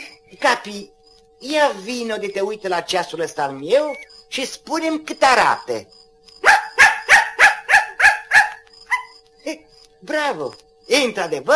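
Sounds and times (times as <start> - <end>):
speech: 0.3 - 6.0, 9.5 - 11.5
dog barking: 6.4 - 9.2.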